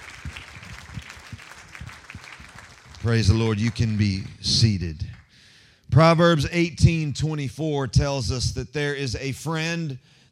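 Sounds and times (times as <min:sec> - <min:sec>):
audience clapping: 0:00.0 - 0:05.5
speech: 0:03.0 - 0:05.1, 0:06.0 - 0:10.3.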